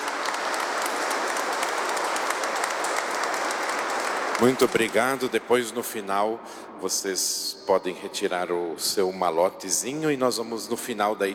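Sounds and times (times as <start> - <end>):
crowd clapping: 0.0 - 5.7
speech: 4.4 - 11.3.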